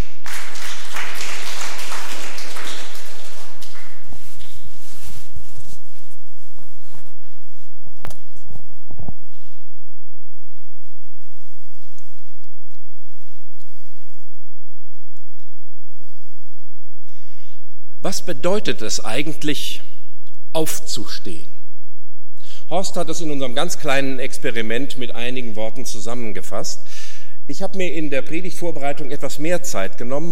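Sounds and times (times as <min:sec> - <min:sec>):
audience applause: 0:00.0 - 0:04.6
speech: 0:18.1 - 0:19.9, 0:20.5 - 0:21.5, 0:22.7 - 0:30.3.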